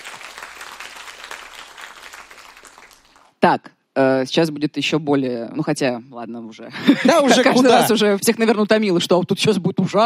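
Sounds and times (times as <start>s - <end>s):
applause: 0.0s - 3.4s
speech: 3.4s - 10.0s.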